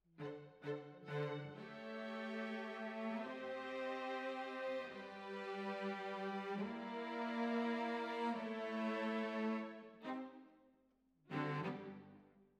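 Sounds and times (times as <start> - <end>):
cellos playing: 0.2 - 10.4, 11.3 - 12.2.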